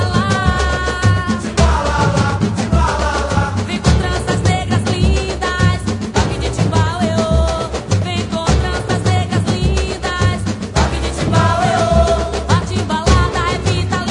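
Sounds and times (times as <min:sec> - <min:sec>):
samba timbal drumming: 0:00.0 - 0:14.1.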